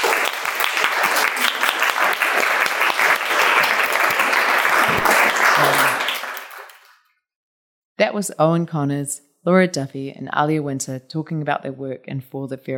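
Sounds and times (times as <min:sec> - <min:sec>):
applause for the artists: 0:00.0 - 0:07.1
speech: 0:08.0 - 0:12.7.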